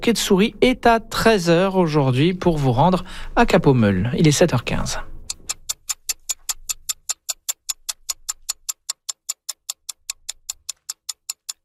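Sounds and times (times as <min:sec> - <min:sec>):
speech: 0:00.0 - 0:05.1
clock ticking: 0:04.6 - 0:11.6.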